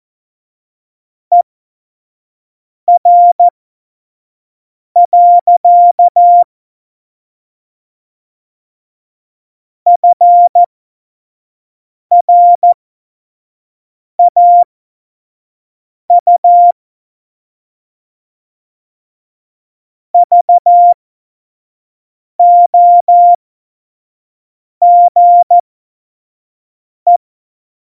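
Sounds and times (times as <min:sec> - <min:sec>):
CW Morse code beeps: 0:03.0 - 0:03.5, 0:05.0 - 0:06.4, 0:09.9 - 0:10.7, 0:12.1 - 0:12.8, 0:14.2 - 0:14.6, 0:16.1 - 0:16.8, 0:20.2 - 0:21.0, 0:22.4 - 0:23.4, 0:24.8 - 0:25.6.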